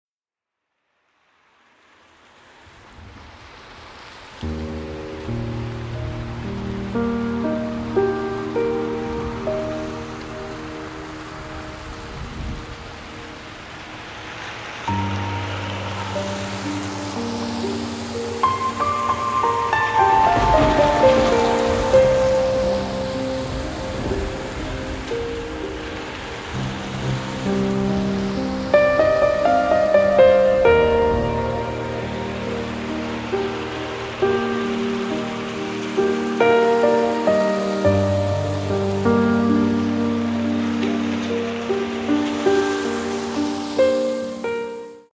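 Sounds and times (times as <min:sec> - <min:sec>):
rain: 0:00.7 - 0:45.1
piano: 0:04.3 - 0:45.1.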